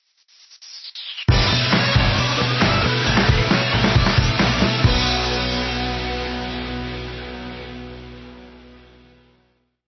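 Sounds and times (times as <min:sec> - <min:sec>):
musical stinger: 0:01.3 - 0:09.1.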